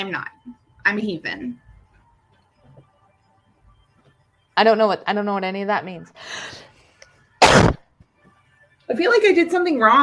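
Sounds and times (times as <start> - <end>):
speech: 0.0 - 1.6, 4.6 - 6.7, 8.9 - 10.0
sneeze: 7.4 - 7.8.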